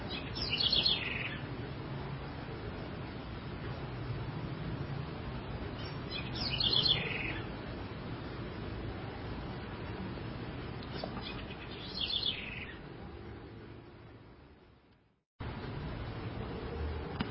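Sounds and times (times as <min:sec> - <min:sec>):
low rumbling background noise: 0:00.0 - 0:17.2
House wren song: 0:00.1 - 0:01.5, 0:05.7 - 0:07.6, 0:10.8 - 0:12.8.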